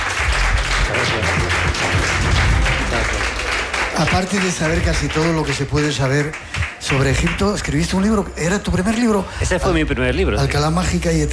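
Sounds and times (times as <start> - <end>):
audience applause: 0.0 - 8.2
speech: 4.0 - 11.3.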